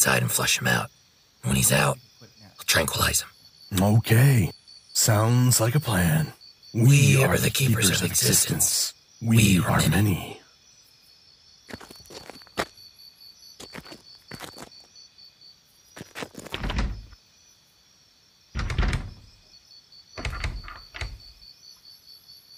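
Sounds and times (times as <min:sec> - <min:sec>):
speech: 0:00.0 - 0:10.4, 0:11.7 - 0:12.0
insect-like chirring: 0:00.0 - 0:22.5
door being tried but won't open: 0:16.4 - 0:17.2, 0:18.6 - 0:19.4, 0:20.2 - 0:21.4.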